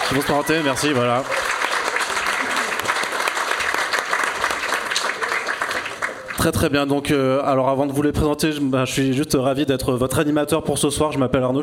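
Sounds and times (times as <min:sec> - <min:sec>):
audience applause: 0:00.0 - 0:06.5
speech: 0:00.1 - 0:01.4, 0:06.4 - 0:11.6.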